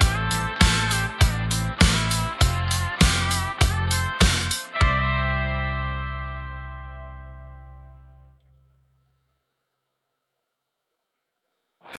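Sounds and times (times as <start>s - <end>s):
instrumental music: 0.0s - 8.6s.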